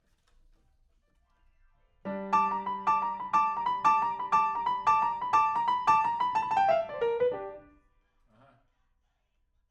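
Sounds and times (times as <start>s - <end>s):
rock and roll piano: 2.1s - 7.8s.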